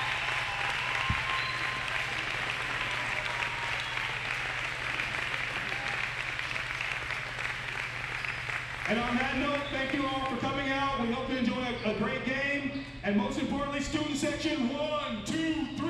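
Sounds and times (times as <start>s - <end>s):
applause: 0.0s - 10.6s
speech: 8.9s - 15.7s.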